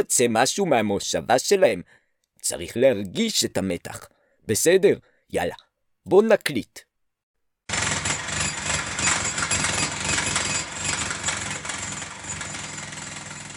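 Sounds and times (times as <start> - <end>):
speech: 0.0 - 6.9
construction worker working behind the building: 7.7 - 13.5.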